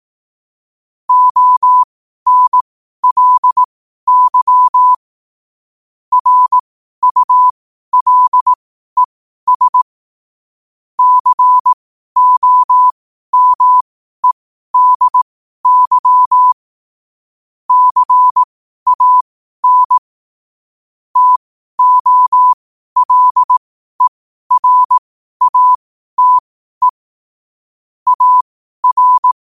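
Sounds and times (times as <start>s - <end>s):
morse code at 5 wpm: 1.1s - 5.0s, 6.1s - 9.9s, 11.0s - 16.6s, 17.7s - 20.1s, 21.2s - 27.0s, 28.1s - 29.4s.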